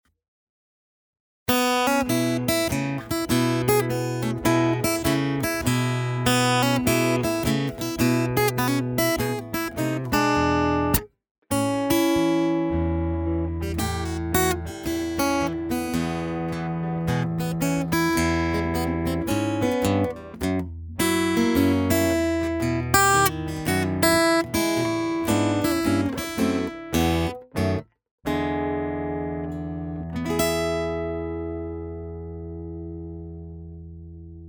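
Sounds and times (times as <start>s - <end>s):
blues music: 1.5s - 33.4s.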